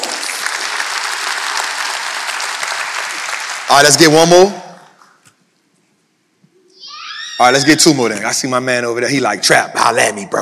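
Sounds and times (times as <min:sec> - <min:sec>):
audience clapping: 0:00.0 - 0:04.2
speech: 0:03.7 - 0:04.6, 0:07.4 - 0:10.4.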